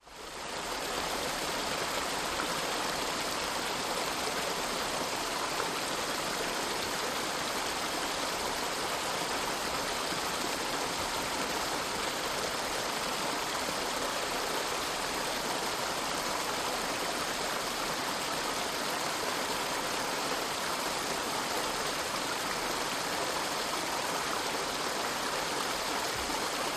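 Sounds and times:
small rushing stream: 0:00.0 - 0:26.7.

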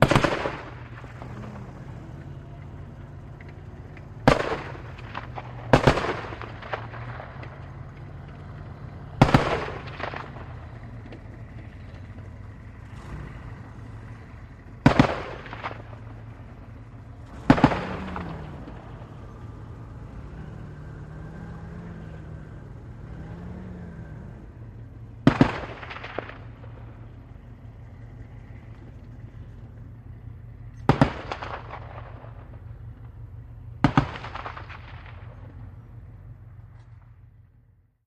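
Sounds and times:
50 caliber machine gun firing: 0:00.0 - 0:01.1, 0:04.2 - 0:07.2, 0:09.2 - 0:10.6, 0:14.8 - 0:16.0, 0:17.4 - 0:18.3, 0:25.2 - 0:26.9, 0:30.8 - 0:32.5, 0:33.8 - 0:35.5
APC armored vehicle driving outside: 0:00.0 - 0:38.0.

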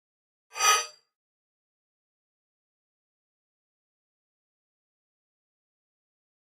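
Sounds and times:
mouse over sound: 0:00.6 - 0:01.0.

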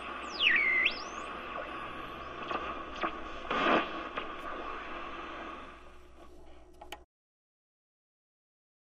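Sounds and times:
electronic machine static: 0:00.0 - 0:06.3.

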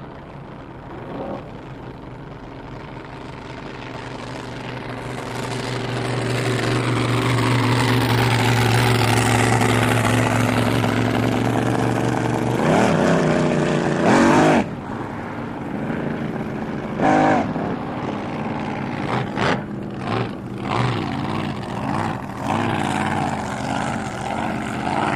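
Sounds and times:
drag boat racing ambience: 0:00.0 - 0:25.1.

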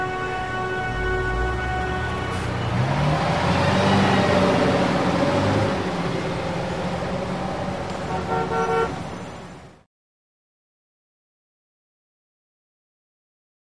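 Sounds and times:
very busy intersection traffic: 0:00.0 - 0:09.9.

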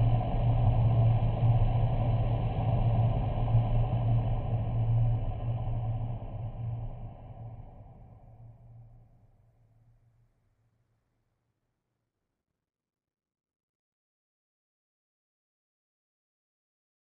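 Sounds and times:
eerie low music: 0:00.0 - 0:08.4.

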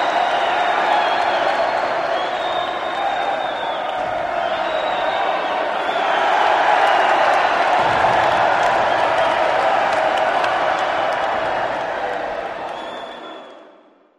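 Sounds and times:
crowd cheering ovation in a big arena: 0:00.0 - 0:14.1.

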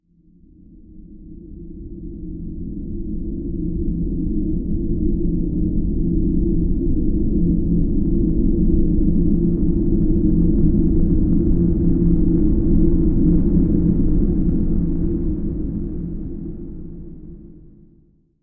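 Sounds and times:
low alien world ambient bed: 0:01.1 - 0:17.8.

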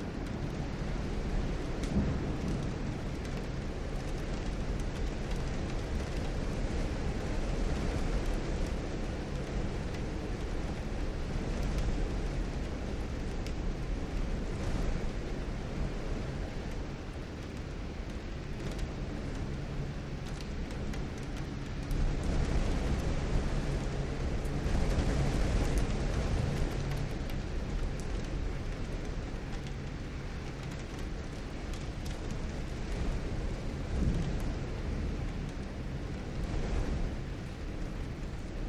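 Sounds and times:
storm lashing window: 0:00.0 - 0:38.6.

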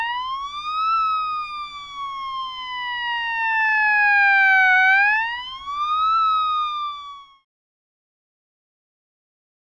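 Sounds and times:
static fire engine siren: 0:00.0 - 0:07.4.

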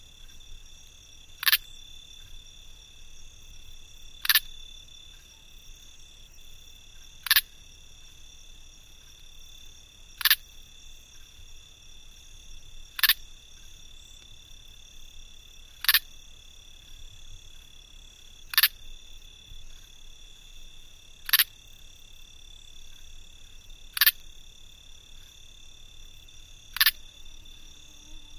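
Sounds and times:
cricket clicking close: 0:00.1 - 0:02.5, 0:04.0 - 0:05.4, 0:06.4 - 0:11.6, 0:12.5 - 0:14.8, 0:15.4 - 0:20.5, 0:21.2 - 0:27.8.

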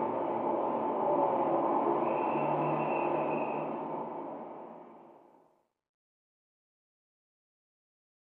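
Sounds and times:
city traffic noise: 0:00.2 - 0:04.8.

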